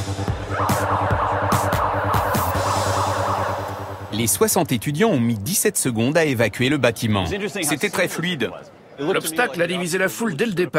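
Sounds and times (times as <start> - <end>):
building fire alarm going off: 0.5 - 4.2
speech: 4.2 - 10.7.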